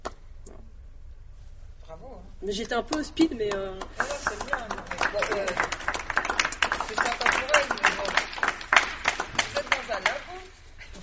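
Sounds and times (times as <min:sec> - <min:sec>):
speech: 0:02.2 - 0:04.5, 0:05.2 - 0:05.8
person applauding themselves: 0:03.4 - 0:10.5.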